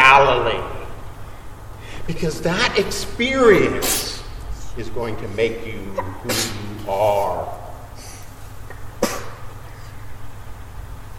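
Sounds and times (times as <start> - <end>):
speech: 2.1 - 4.2, 4.8 - 7.6
person sneezing: 3.8 - 4.3, 6.0 - 6.9, 9.0 - 9.6.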